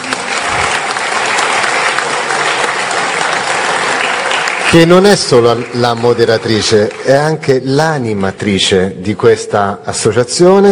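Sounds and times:
audience applauding: 0.0s - 8.5s
speech: 4.7s - 10.7s.

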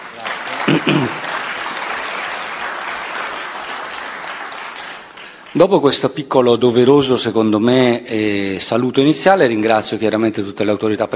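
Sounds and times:
audience applause: 0.0s - 5.8s
speech: 0.2s - 1.3s, 5.6s - 11.1s.

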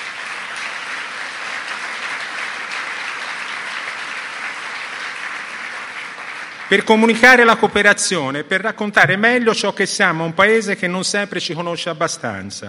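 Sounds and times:
audience applause in a hall: 0.0s - 7.8s
speech: 6.7s - 12.6s.

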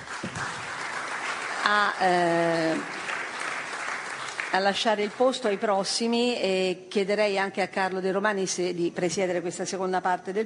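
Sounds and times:
applause for panel guests at a conference: 0.0s - 5.3s
speech: 1.7s - 3.0s, 4.5s - 10.4s.

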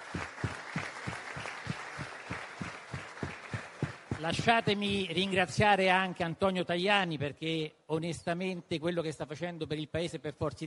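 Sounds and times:
audience applause: 0.0s - 5.4s
speech: 4.2s - 10.6s.

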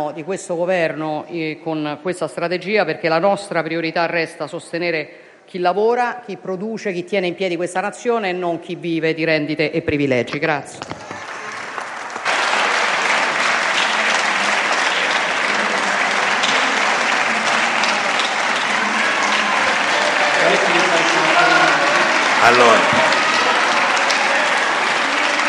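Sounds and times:
speech: 0.0s - 11.1s, 22.5s - 23.0s
loud applause in a parliamentary chamber: 10.8s - 25.4s.

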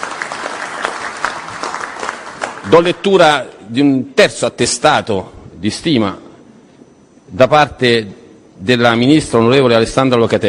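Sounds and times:
audience applause at an inauguration ceremony: 0.0s - 3.0s
speech: 2.7s - 6.2s, 7.3s - 10.4s.

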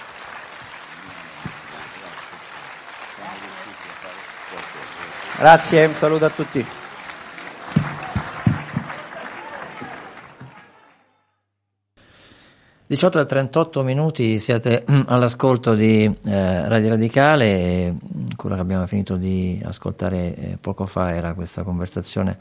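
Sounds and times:
audience applause: 0.0s - 11.0s
speech: 5.4s - 6.8s, 12.9s - 22.3s.

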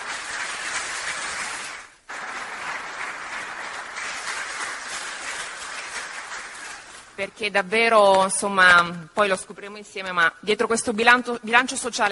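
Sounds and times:
applause: 0.0s - 7.2s
speech: 7.2s - 12.1s.

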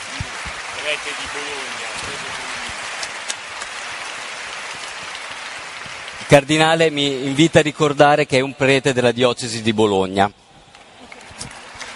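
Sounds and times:
audience applause: 0.0s - 8.0s, 10.8s - 11.9s
speech: 0.9s - 2.6s, 6.3s - 10.4s.

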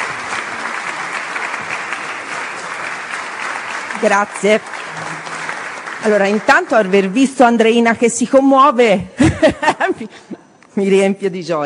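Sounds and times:
audience applause: 0.0s - 7.6s
speech: 4.0s - 4.8s, 6.0s - 11.6s
laughter: 9.1s - 10.3s.

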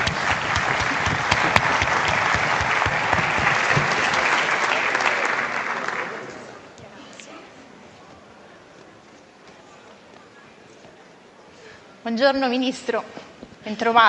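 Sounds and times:
audience applause: 0.0s - 6.6s
speech: 12.2s - 14.0s.

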